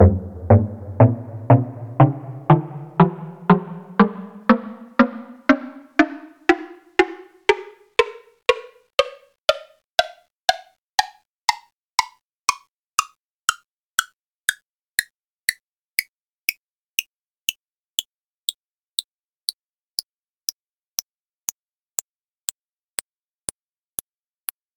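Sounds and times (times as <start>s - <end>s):
woodblock scale: 0.0s - 16.6s.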